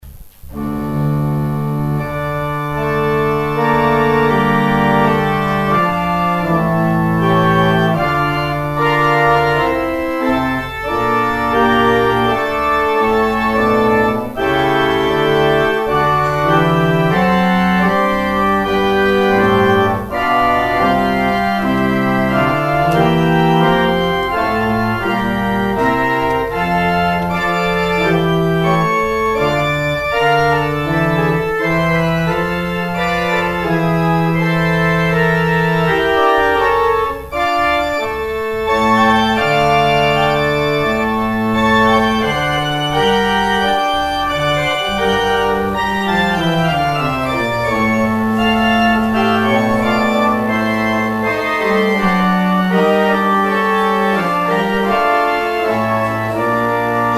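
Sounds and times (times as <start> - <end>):
organ outro: 0.5 - 57.1.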